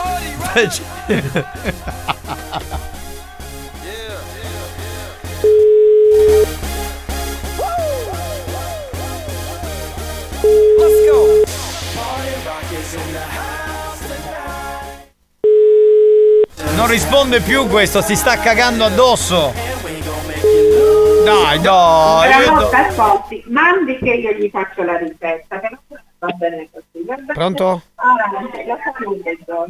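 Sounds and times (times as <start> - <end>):
laughter: 0.0 - 5.5, 7.6 - 11.4, 16.6 - 19.6, 21.1 - 23.2
music: 0.0 - 15.1, 16.5 - 23.4
speech: 0.5 - 2.7, 16.9 - 19.6, 21.2 - 29.6
outgoing call ringing tone: 5.4 - 6.5, 10.4 - 11.5, 15.4 - 16.5, 20.5 - 21.4.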